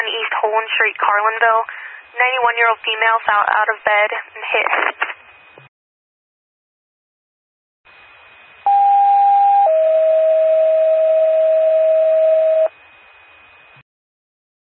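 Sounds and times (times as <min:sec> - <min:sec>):
radio static: 0:00.0 - 0:05.7
speech: 0:00.5 - 0:05.1
two-tone dispatch pager alert: 0:08.7 - 0:12.7.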